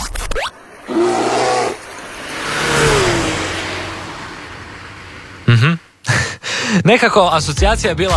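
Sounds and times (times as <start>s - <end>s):
rising whoosh: 0.0s - 6.1s
race car engine revving as a radio contest signal: 0.4s - 6.2s
speech: 6.8s - 8.1s.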